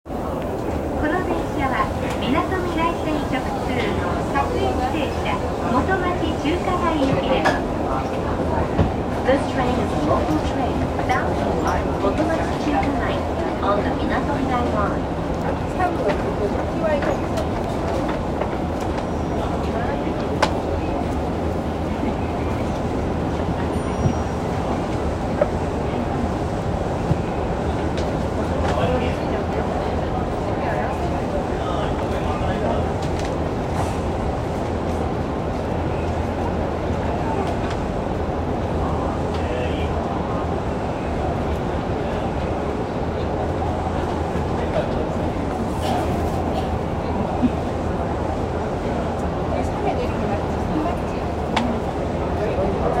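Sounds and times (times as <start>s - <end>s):
train: 0.0s - 52.9s.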